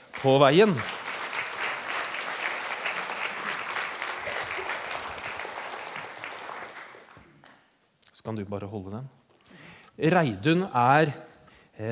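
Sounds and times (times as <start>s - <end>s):
audience applause: 0.0s - 7.6s
speech: 0.2s - 1.0s, 8.3s - 9.2s, 10.0s - 11.8s.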